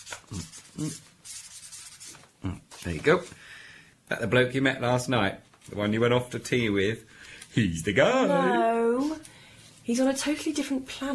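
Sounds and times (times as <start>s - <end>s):
pen scratching a number onto a cigarette packet: 0.0s - 2.2s
speech: 0.3s - 1.1s, 2.4s - 3.4s, 4.1s - 9.3s, 9.9s - 11.1s.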